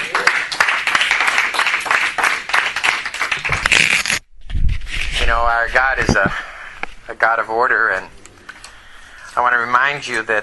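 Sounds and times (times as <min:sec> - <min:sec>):
audience applause: 0:00.0 - 0:03.7
speech: 0:05.3 - 0:06.5, 0:07.1 - 0:08.2, 0:09.4 - 0:10.4.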